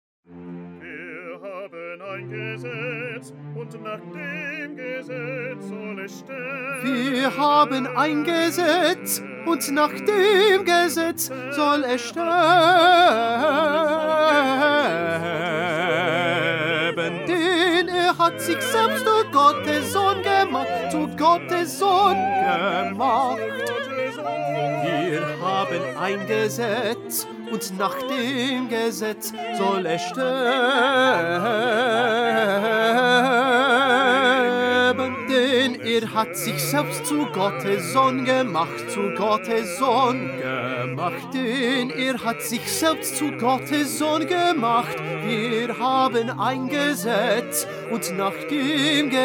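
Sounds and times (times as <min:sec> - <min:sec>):
tenor singing: 0:00.7 - 0:49.2.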